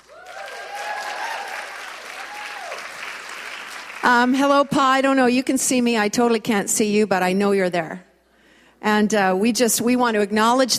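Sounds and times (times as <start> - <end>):
audience applause: 0.0 - 4.1
speech: 4.0 - 8.1, 8.8 - 10.7.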